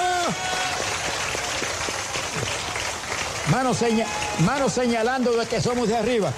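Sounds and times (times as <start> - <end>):
audience clapping: 0.0 - 6.3
speech: 3.5 - 6.3.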